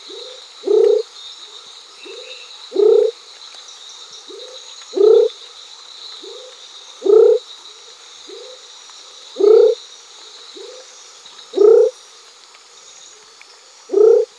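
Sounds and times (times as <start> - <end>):
Knudsen's thin-toed frog calling: 0.0 - 1.1, 2.0 - 3.2, 4.2 - 5.4, 6.2 - 7.5, 9.3 - 9.8, 10.5 - 12.0, 13.9 - 14.3.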